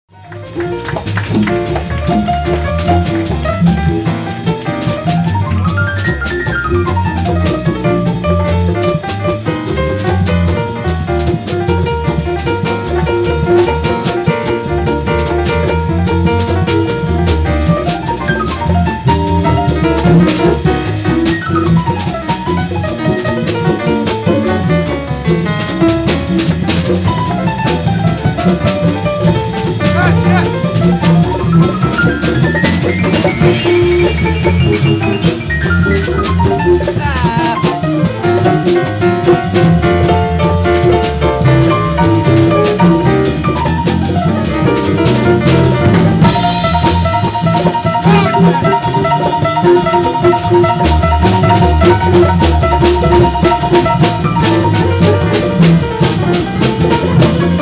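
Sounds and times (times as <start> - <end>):
piano: 0.0 - 57.6.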